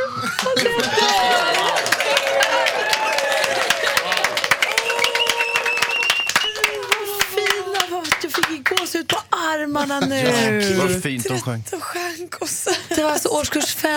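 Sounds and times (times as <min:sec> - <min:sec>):
audience clapping after a song: 0:00.2 - 0:09.3
speech: 0:09.8 - 0:13.9.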